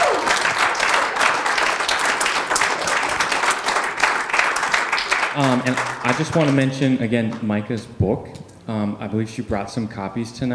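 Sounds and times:
sustained applause from a sizable audience: 0.0 - 7.5
speech: 5.4 - 10.5.

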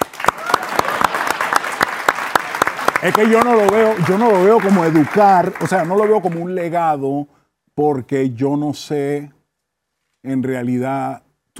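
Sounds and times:
talk show audience applause: 0.0 - 6.6
speech: 3.0 - 9.4, 10.2 - 11.5.

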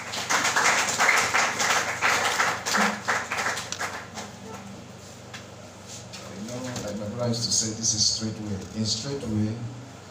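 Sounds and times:
audience clapping: 0.0 - 4.5
speech: 7.3 - 9.8.

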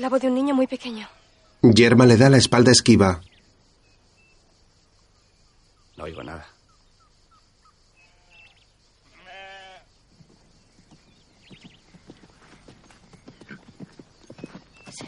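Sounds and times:
speech: 0.0 - 3.3, 6.0 - 6.5
horse hooves clip-clopping as rider arrives: 10.1 - 15.0.

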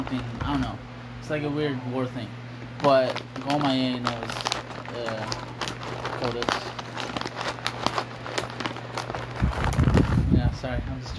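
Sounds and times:
low steady hum: 0.0 - 11.1
speech: 0.1 - 5.6, 6.2 - 6.8
Trader Joe's banana chips being eaten: 2.8 - 10.4.

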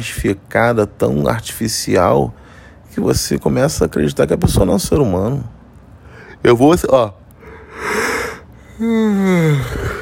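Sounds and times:
speech: 0.0 - 5.6, 6.4 - 7.2, 8.8 - 9.9
yawn: 7.5 - 10.0.

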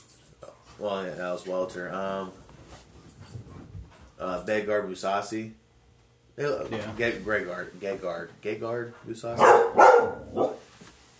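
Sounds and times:
speech: 0.8 - 2.4, 4.2 - 5.6, 6.4 - 10.5
dog barking: 9.4 - 10.7.

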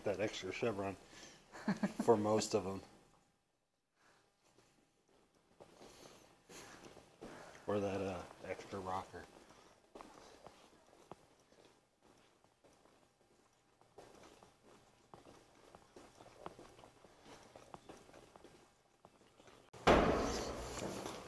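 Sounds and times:
speech: 0.0 - 2.9, 7.7 - 9.4
footsteps climbing stairs: 4.6 - 21.2.

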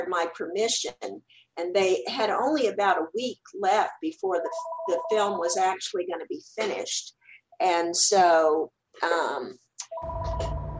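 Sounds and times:
speech: 0.1 - 10.6
telephone ringing with a buzzy electronic tone: 4.4 - 5.6.

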